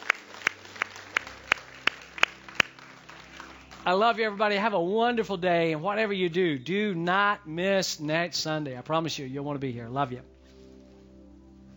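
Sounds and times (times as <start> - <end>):
audience clapping in unison: 0.0 - 5.0
speech: 3.9 - 10.3.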